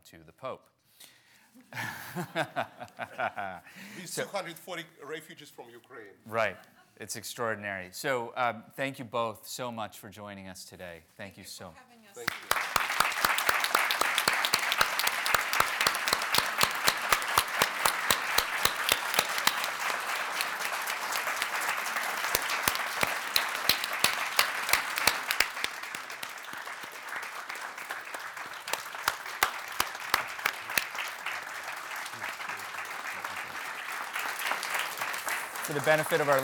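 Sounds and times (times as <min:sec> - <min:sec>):
speech: 0:00.1 - 0:12.5, 0:35.7 - 0:36.4
laughter: 0:01.7 - 0:04.4
audience standing ovation at a film festival forum in Cleveland: 0:12.2 - 0:36.4.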